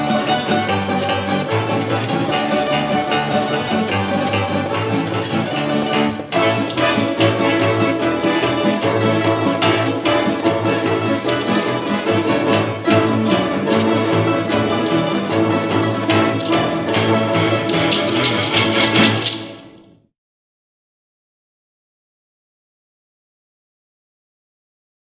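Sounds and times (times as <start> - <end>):
Russian balalaika playing: 0.0 - 20.0.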